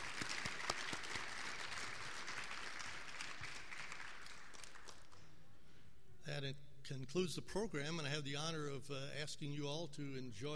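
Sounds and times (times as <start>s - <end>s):
audience applause: 0.0s - 5.1s
speech: 6.4s - 10.5s.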